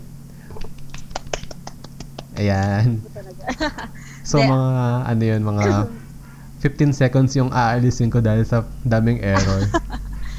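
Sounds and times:
hand clapping: 0.6s - 2.7s
laughter: 2.4s - 4.8s, 5.6s - 6.0s, 9.2s - 10.3s
speech: 2.4s - 6.0s, 6.6s - 9.9s.

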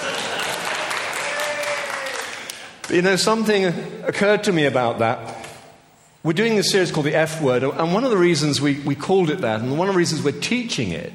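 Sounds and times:
audience applause: 0.0s - 2.9s
speech: 2.9s - 5.4s, 6.2s - 11.1s.

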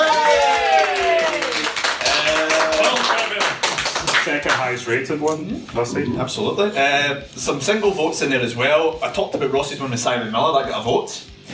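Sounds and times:
applause: 0.0s - 4.9s
speech: 4.6s - 11.5s.

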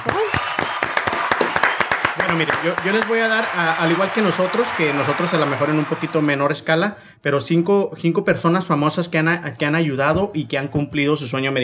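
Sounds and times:
audience applause: 0.0s - 6.6s
speech: 2.3s - 11.6s.

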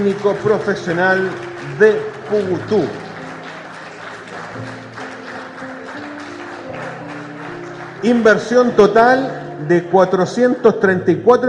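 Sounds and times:
speech: 0.0s - 3.0s, 8.0s - 11.4s
audience applause: 0.0s - 8.9s.

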